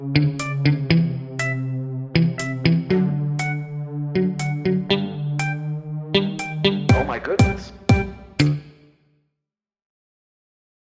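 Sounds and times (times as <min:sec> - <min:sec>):
MIDI ditty: 0:00.2 - 0:08.7.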